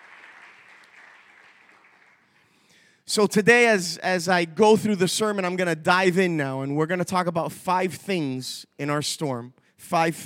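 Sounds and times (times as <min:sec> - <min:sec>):
audience clapping in praise: 0:00.0 - 0:02.6
speech: 0:03.1 - 0:10.2.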